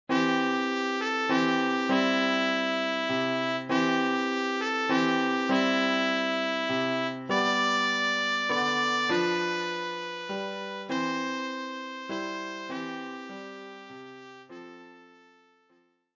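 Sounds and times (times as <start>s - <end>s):
trumpet: 0.1s - 15.7s.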